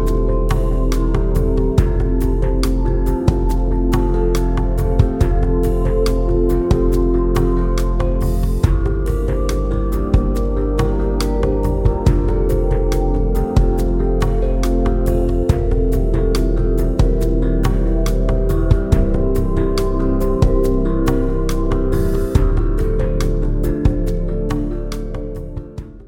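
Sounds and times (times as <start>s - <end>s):
deep relaxing music: 0.0s - 26.0s.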